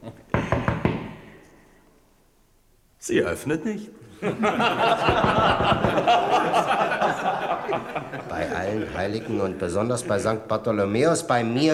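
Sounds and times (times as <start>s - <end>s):
laughter: 0.0s - 0.3s, 4.1s - 10.7s
knocking on a door: 0.3s - 1.3s, 5.0s - 6.2s
speech: 3.0s - 6.9s, 7.7s - 11.7s.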